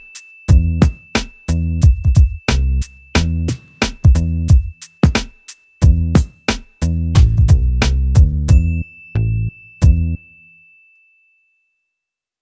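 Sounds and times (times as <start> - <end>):
cool dramedy hip-hop track: 0.0 - 8.7.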